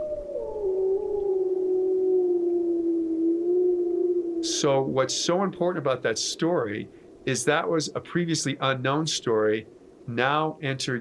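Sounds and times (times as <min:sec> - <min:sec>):
wolf howling: 0:00.0 - 0:05.4
speech: 0:04.4 - 0:10.9.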